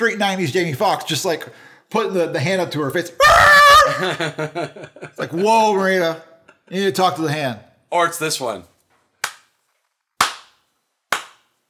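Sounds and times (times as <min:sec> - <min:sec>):
speech: 0:00.0 - 0:08.7
slow hand claps: 0:09.2 - 0:09.5, 0:10.2 - 0:11.5.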